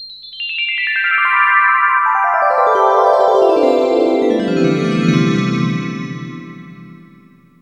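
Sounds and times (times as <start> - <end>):
descending synth chimes: 1.5 - 7.4.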